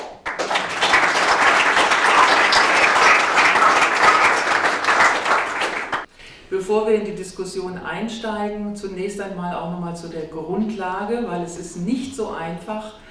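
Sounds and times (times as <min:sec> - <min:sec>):
audience applause: 0:00.0 - 0:06.1
speech: 0:06.7 - 0:13.0.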